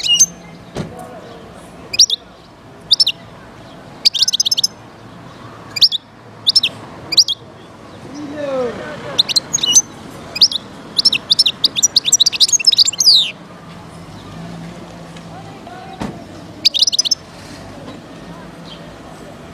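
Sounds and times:
wild European goldfinch singing: 0.0 - 0.7, 1.3 - 4.8, 5.7 - 8.4, 9.1 - 13.4, 15.9 - 17.3.

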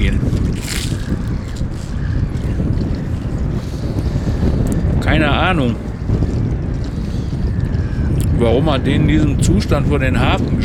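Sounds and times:
onshore wind at a harbour buffeting the microphone: 0.0 - 10.6
speech: 5.5 - 5.8, 8.4 - 10.6.

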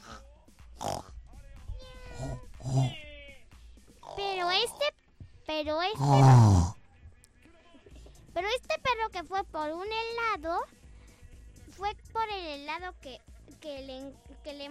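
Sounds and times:
voice imitating pig grunting snort: 0.0 - 0.2, 0.8 - 1.2, 2.0 - 3.0, 4.0 - 5.0, 5.9 - 6.8
voice imitating meowing: 1.7 - 3.4, 5.9 - 6.8
speech: 5.6 - 6.7, 9.2 - 10.8, 11.8 - 14.6.

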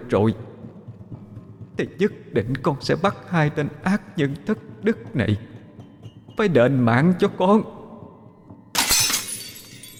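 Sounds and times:
speech: 0.1 - 0.5, 1.8 - 5.5, 6.4 - 7.8
glass mirror smashed by a woman against the ground, shattering: 8.8 - 9.9
glass shards tinkling: 8.8 - 9.9.

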